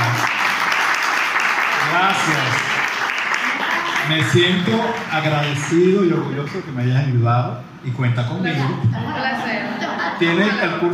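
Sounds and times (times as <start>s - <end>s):
applause: 0.0s - 7.0s
speech: 4.1s - 10.9s.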